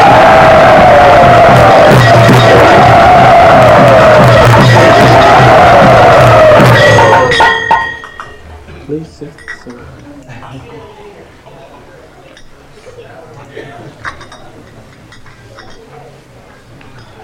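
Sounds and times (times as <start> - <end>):
crowd cheering and shouting at a yatra gathering: 0.0 - 8.4.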